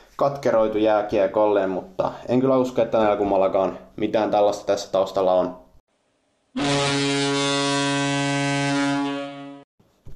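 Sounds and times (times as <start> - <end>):
speech: 0.2 - 5.6, 6.6 - 6.8
buzzer sounding: 6.6 - 9.6.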